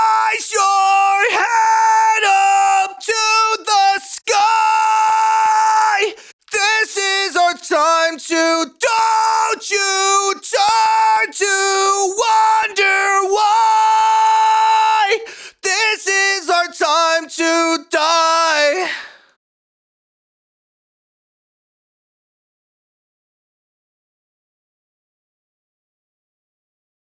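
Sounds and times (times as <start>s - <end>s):
heavy dry main vocal: 0.0s - 19.2s.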